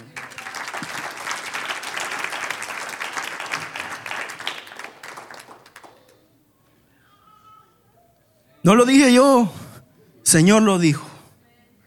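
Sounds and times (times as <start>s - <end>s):
audience applauding: 0.0s - 6.2s
speech: 8.6s - 9.6s, 10.3s - 11.1s.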